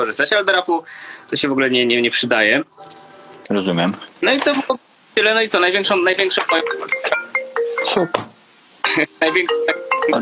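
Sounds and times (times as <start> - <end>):
speech: 0.0 - 7.2, 7.8 - 8.3, 9.0 - 10.2
phone ringing with bright electronic ringtone: 6.5 - 8.0, 9.3 - 10.2.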